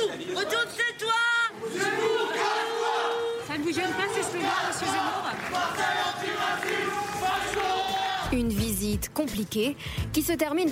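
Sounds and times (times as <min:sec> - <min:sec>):
crowd booing and jeering: 0:00.0 - 0:08.4
speech: 0:09.0 - 0:10.6.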